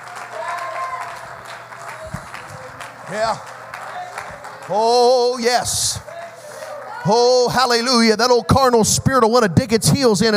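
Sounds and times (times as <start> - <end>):
audience clapping hands: 0.0 - 7.9
speech: 3.1 - 3.5, 4.7 - 6.0, 7.0 - 10.3.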